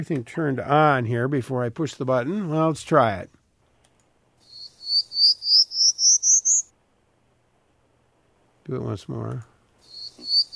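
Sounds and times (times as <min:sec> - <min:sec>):
speech: 0:00.0 - 0:03.4, 0:08.7 - 0:09.5
prairie warbler song: 0:04.4 - 0:06.7, 0:09.8 - 0:10.5.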